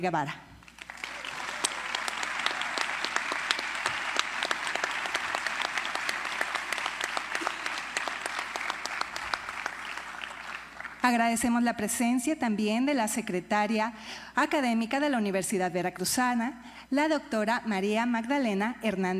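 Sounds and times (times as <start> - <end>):
speech: 0.0 - 0.5, 11.0 - 19.1
audience applause: 0.7 - 11.0.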